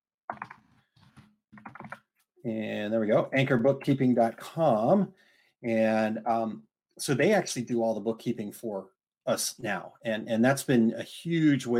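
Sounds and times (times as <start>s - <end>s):
computer keyboard keystrokes typing a web address: 0.3s - 0.6s, 1.6s - 2.0s
speech: 2.4s - 11.7s.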